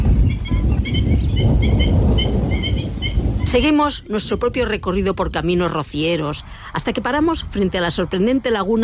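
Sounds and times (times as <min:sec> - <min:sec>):
waterbirds calling at a lagoon: 0:00.0 - 0:06.6
wind or water rumble: 0:00.0 - 0:08.8
speech: 0:03.5 - 0:08.8.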